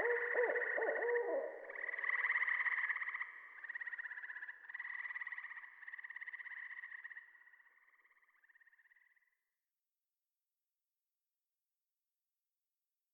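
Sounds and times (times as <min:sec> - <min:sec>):
Saw-whet Owl calling: 0:00.0 - 0:02.4
Gray Treefrog calling: 0:00.0 - 0:09.4.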